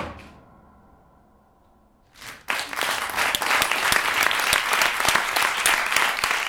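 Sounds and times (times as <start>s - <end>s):
audience applause: 2.2s - 6.4s.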